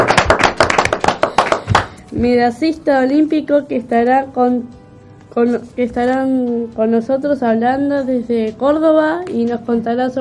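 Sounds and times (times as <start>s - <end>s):
sharp rhythmic hand claps: 0.0s - 2.0s
speech: 2.2s - 10.1s.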